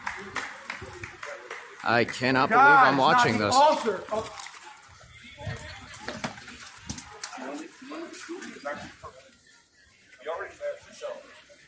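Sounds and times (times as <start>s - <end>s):
Pride crowd cheering and clapping: 0.0s - 3.9s
speech: 1.8s - 4.4s.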